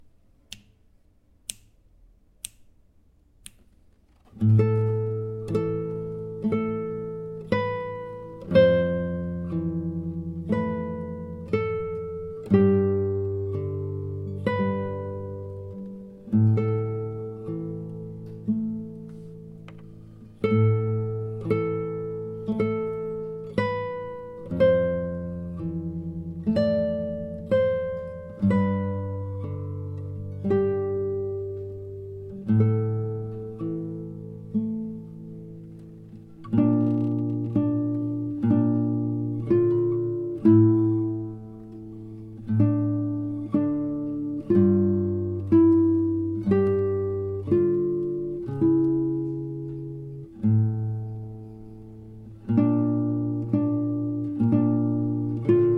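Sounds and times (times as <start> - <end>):
slow Celtic melody: 4.3 - 55.7.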